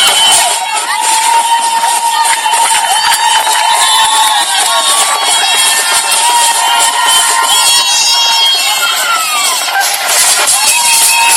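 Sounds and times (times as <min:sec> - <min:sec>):
large crowd cheering and shouting at airport welcome: 0:00.0 - 0:11.3.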